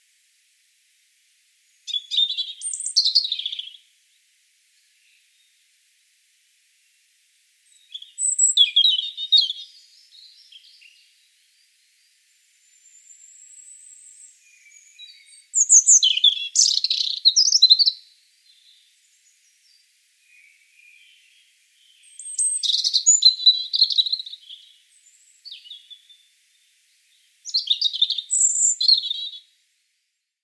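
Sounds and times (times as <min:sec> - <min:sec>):
European robin singing: 0:01.8 - 0:03.9, 0:07.7 - 0:11.7, 0:12.6 - 0:26.3, 0:27.1 - 0:29.4.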